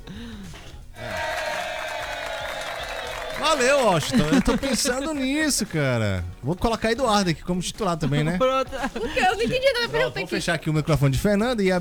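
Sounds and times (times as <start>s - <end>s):
laughter: 0.0s - 11.7s
applause: 0.4s - 6.7s
speech: 3.4s - 11.7s.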